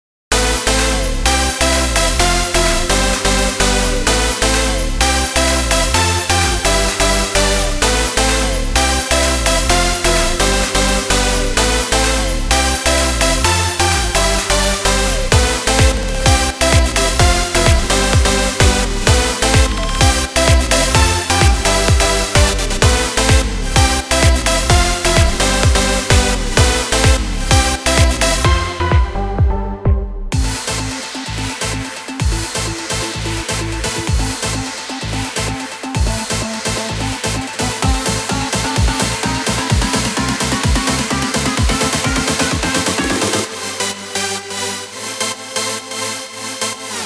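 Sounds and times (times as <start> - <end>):
electronic dance music: 0.3 - 47.0.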